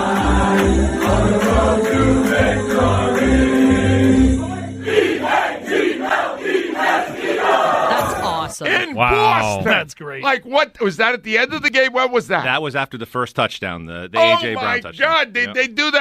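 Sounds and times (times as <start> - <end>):
bar crowd singing football fight song: 0.0 - 9.8
speech: 8.6 - 15.9.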